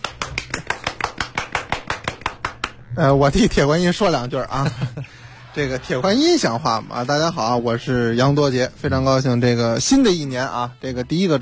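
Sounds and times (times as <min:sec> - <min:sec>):
hand claps: 0:00.0 - 0:02.9
speech: 0:03.0 - 0:11.4
laughter: 0:04.3 - 0:08.3.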